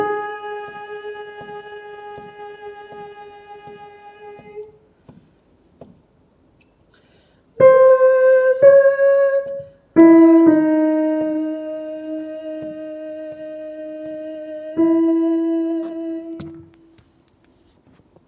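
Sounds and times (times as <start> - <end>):
soprano singing: 0.0 - 4.8, 7.6 - 16.9.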